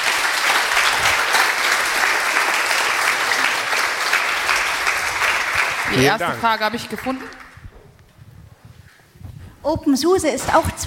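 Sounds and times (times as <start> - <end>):
audience applause: 0.0 - 7.7
speech: 5.9 - 7.4, 9.6 - 10.8.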